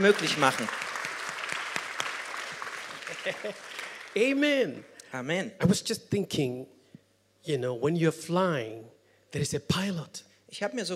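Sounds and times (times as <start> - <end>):
speech: 0.0 - 0.9, 3.2 - 6.8, 7.4 - 10.9
audience applause: 0.0 - 4.4
laughter: 2.8 - 4.0.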